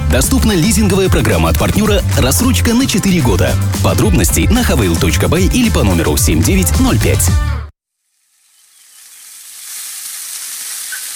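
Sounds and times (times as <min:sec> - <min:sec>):
speech: 0:00.1 - 0:07.5
meat sizzling on a mangal grill at a grill fest: 0:08.0 - 0:11.1.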